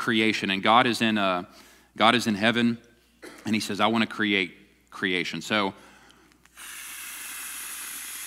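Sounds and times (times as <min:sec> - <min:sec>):
speech: 0:00.0 - 0:05.9
breath blowing into a beach ball: 0:06.5 - 0:08.2.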